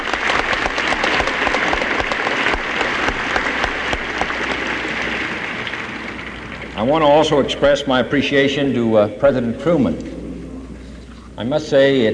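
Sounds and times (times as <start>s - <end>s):
audience applauding: 0.0s - 6.6s
speech: 6.8s - 10.1s, 11.4s - 12.1s.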